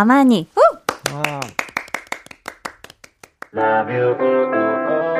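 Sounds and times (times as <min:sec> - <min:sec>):
speech: 0:00.0 - 0:01.6, 0:03.6 - 0:05.0
crowd studio clapping: 0:00.8 - 0:03.8.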